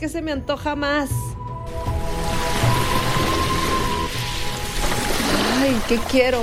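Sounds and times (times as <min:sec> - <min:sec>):
speech: 0:00.0 - 0:01.9, 0:05.6 - 0:06.4
beach surf washing: 0:01.7 - 0:06.4.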